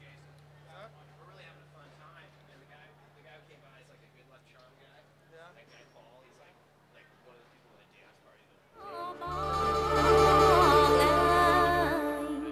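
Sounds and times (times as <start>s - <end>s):
airport ambience while packing up at San Francisco International Airport: 8.8s - 12.5s.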